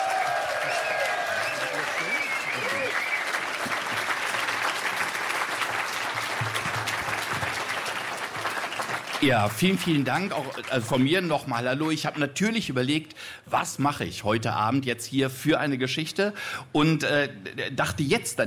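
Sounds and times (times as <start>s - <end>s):
audience applause: 0.0s - 11.3s
speech: 9.2s - 18.4s.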